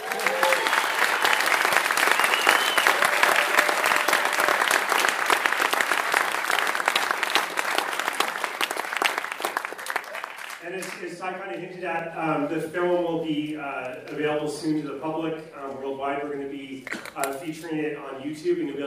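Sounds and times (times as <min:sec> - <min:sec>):
audience applause: 0:00.0 - 0:11.0
speech: 0:11.2 - 0:18.8.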